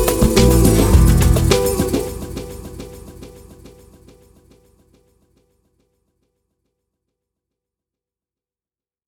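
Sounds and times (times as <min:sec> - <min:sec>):
instrumental music: 0:00.0 - 0:04.2.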